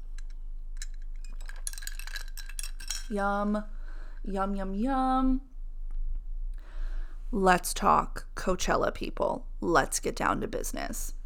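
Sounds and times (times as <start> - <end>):
mug or cup clinking: 0.8 - 3.1
speech: 3.1 - 5.5, 7.3 - 11.2.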